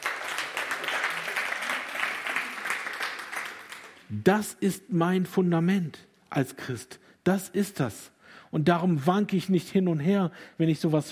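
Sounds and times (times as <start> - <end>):
audience clapping: 0.0 - 4.2
speech: 4.1 - 11.0.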